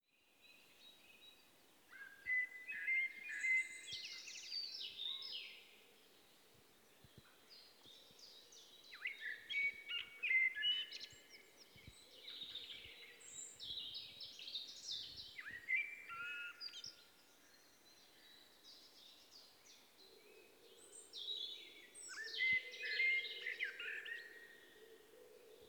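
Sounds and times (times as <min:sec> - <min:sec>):
common blackbird song of fluty whistles and twitters: 0:01.9 - 0:05.6, 0:08.9 - 0:17.0, 0:21.2 - 0:24.7.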